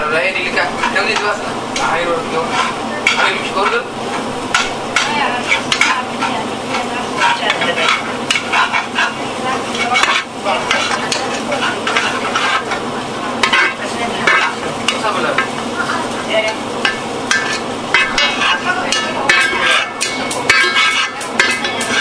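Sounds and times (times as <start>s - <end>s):
sauce sizzling in a pot: 0.0s - 21.9s
scraping and clinking stirring strokes in a pot: 0.4s - 21.9s.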